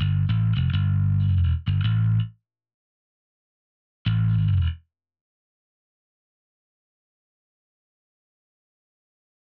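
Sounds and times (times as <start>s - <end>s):
bass: 0.0s - 2.4s, 4.1s - 4.8s.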